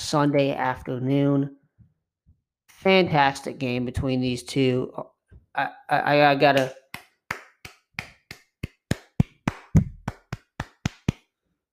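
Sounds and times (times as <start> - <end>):
speech: 0.0 - 1.6, 2.8 - 6.8
sharp hand claps close to the microphone: 6.6 - 11.3.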